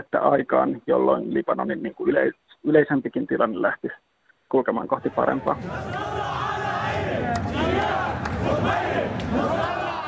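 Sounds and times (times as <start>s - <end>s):
speech: 0.0s - 6.1s
protest crowd chanting and shouting in Beirut: 5.0s - 10.0s.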